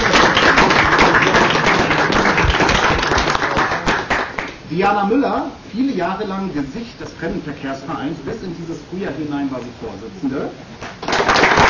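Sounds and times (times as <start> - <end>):
audience applause: 0.0 - 4.5, 10.8 - 11.6
speech: 4.8 - 11.0.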